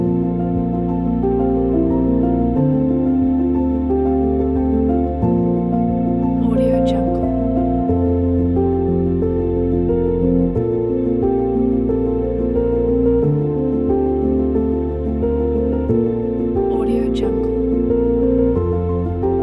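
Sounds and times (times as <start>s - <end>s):
soft piano background music: 0.0s - 19.4s.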